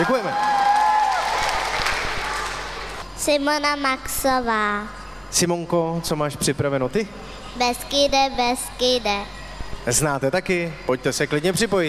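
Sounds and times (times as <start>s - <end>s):
speech: 0.0s - 0.5s, 3.2s - 11.8s
audience clapping after a Czech folk song: 0.0s - 3.0s.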